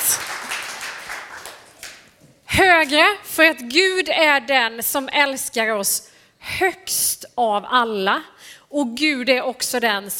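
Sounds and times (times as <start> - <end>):
audience applauding: 0.0 - 2.0
speech: 2.8 - 10.1.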